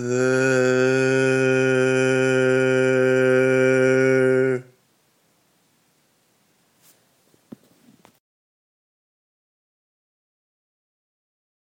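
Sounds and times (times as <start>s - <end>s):
barbershop bass singing tags: 0.0s - 4.7s.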